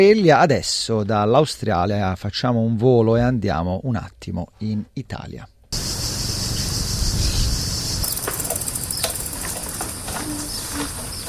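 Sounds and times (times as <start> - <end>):
speech: 0.0 - 5.5
low rumble: 5.8 - 8.1
cicadas droning: 5.8 - 11.2
footsteps on ancient road: 8.0 - 11.2.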